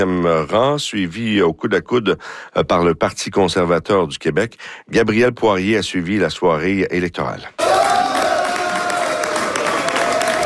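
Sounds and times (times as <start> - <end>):
speech: 0.0 - 7.6
supporters cheering at election victory: 7.6 - 10.4.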